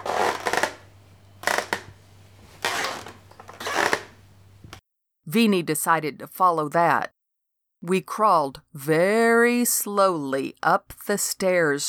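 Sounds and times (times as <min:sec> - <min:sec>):
creaking overhead: 0:00.0 - 0:04.8
speech: 0:05.3 - 0:07.2, 0:07.8 - 0:11.8.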